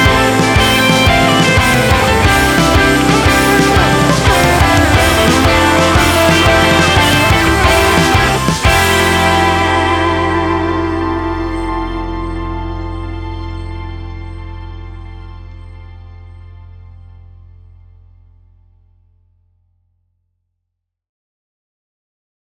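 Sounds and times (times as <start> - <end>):
instrumental music: 0.0 - 17.5.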